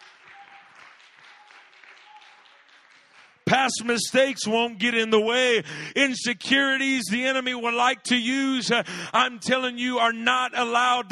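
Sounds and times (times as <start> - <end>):
faint voices and cheers: 0.0 - 3.3
audience clapping: 0.0 - 4.1
speech: 3.5 - 11.1.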